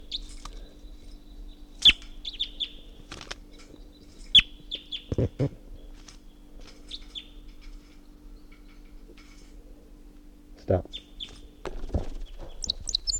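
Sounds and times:
wild bird chirping: 0:00.0 - 0:03.0, 0:03.7 - 0:08.8, 0:10.9 - 0:13.1
steady low hum: 0:00.0 - 0:13.1
speech: 0:05.2 - 0:05.6.

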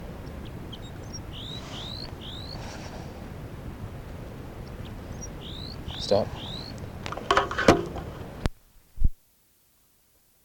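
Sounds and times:
crossbill alarm calls: 0:00.0 - 0:08.0
low wind-like rumble: 0:00.0 - 0:09.2
faint ticks: 0:00.2 - 0:02.6, 0:04.0 - 0:07.2
speech: 0:06.1 - 0:06.5.

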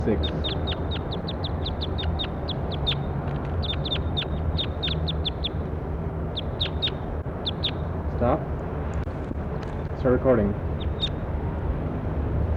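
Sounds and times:
speech: 0:00.0 - 0:00.6, 0:10.0 - 0:10.6
bird calling with quick high-pitched chirps: 0:00.0 - 0:08.0, 0:10.7 - 0:11.3
constant low rumble: 0:00.0 - 0:12.5.

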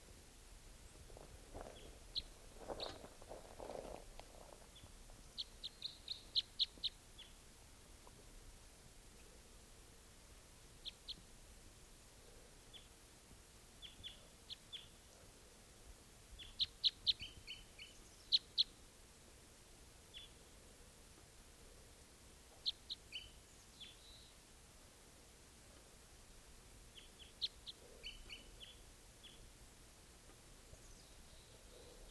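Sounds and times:
low steady hiss: 0:00.0 - 0:32.0
rustling or footsteps: 0:00.9 - 0:05.4
wild bird chirping near decoys: 0:01.6 - 0:03.1, 0:04.7 - 0:07.4, 0:10.8 - 0:11.2, 0:12.7 - 0:13.0, 0:13.8 - 0:15.3, 0:16.4 - 0:18.8, 0:20.1 - 0:20.4, 0:22.5 - 0:24.4, 0:26.9 - 0:29.5, 0:30.7 - 0:32.0.

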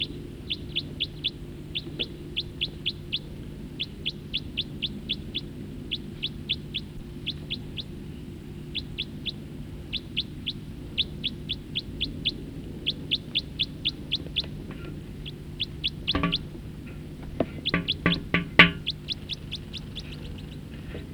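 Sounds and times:
bird calling and chirping: 0:00.0 - 0:21.1.

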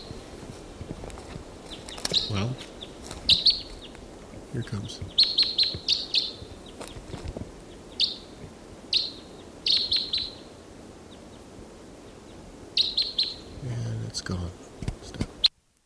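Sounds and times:
soft footsteps: 0:00.0 - 0:07.6
rustling: 0:00.0 - 0:08.7
wild bird flight calls: 0:01.2 - 0:13.6
speech: 0:02.2 - 0:02.8, 0:04.5 - 0:05.3, 0:14.2 - 0:14.7.

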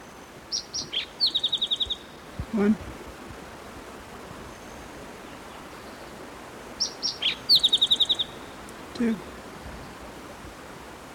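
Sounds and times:
hiss: 0:00.0 - 0:11.1
spotted towhee song recorded at Cherry Creek locality: 0:00.5 - 0:02.2, 0:06.8 - 0:08.4
speech: 0:02.5 - 0:03.0, 0:09.0 - 0:09.3.

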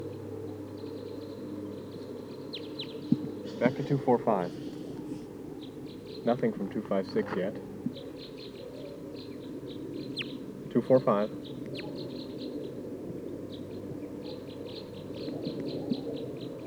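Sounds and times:
type 2 birds calling in pine tree: 0:00.0 - 0:16.6
speech: 0:03.6 - 0:04.7, 0:06.2 - 0:08.1, 0:10.8 - 0:11.4.

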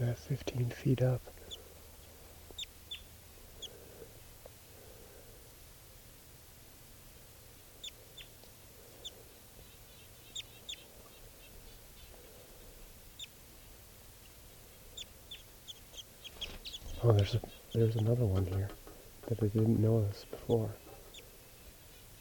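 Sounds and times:
speech: 0:00.0 - 0:01.4, 0:17.1 - 0:20.8
wild bird calling: 0:01.3 - 0:04.2, 0:07.7 - 0:13.7, 0:14.6 - 0:19.3, 0:20.0 - 0:22.1.

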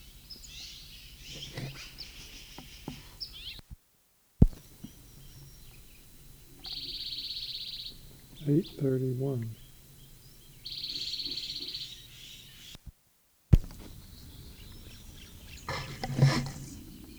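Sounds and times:
faint bird chirps: 0:00.0 - 0:03.6, 0:04.4 - 0:12.8, 0:13.6 - 0:17.1
speech: 0:08.5 - 0:09.6.

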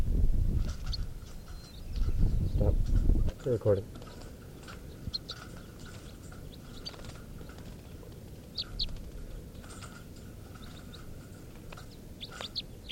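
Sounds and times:
calls of male test birds: 0:00.6 - 0:02.7, 0:04.7 - 0:12.9
speech: 0:03.4 - 0:04.0.

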